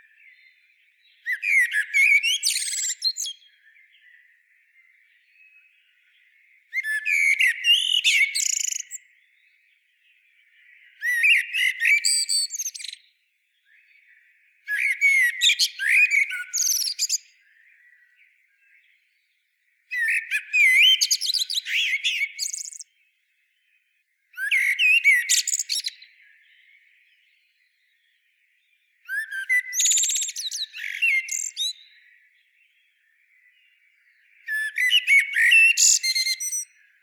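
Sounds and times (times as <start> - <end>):
common blackbird song: 0.0 - 37.0.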